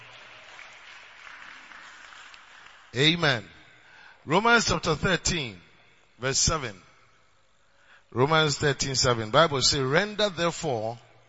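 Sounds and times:
crowd clapping: 0.0 - 3.5
speech: 2.9 - 3.5, 4.2 - 5.6, 6.2 - 6.8, 8.1 - 11.0.

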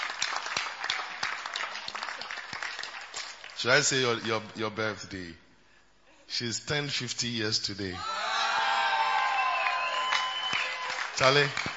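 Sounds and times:
group clapping: 0.0 - 3.6, 8.8 - 11.7
speech: 3.6 - 5.4, 6.3 - 8.3, 11.2 - 11.7.

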